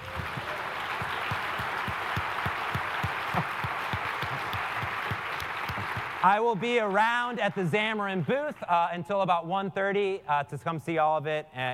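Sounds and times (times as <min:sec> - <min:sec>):
audience applause: 0:00.0 - 0:08.6
speech: 0:06.2 - 0:11.7.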